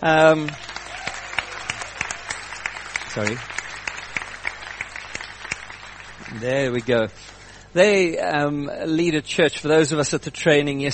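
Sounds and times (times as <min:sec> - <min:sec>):
speech: 0:00.0 - 0:00.7, 0:03.1 - 0:03.6, 0:06.3 - 0:10.9
audience clapping at a church gathering: 0:00.1 - 0:07.4.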